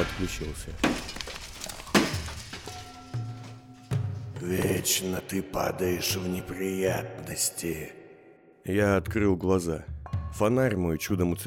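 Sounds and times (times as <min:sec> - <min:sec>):
stones falling onto a man at the bottom of a well: 0:00.0 - 0:03.6
speech: 0:00.1 - 0:01.2, 0:04.4 - 0:08.0, 0:08.7 - 0:11.4.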